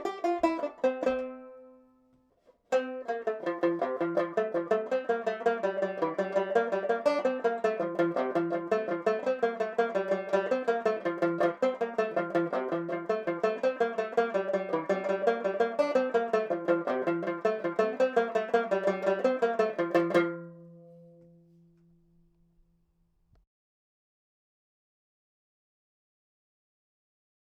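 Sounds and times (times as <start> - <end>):
tenor banjo playing: 0.0 - 22.7.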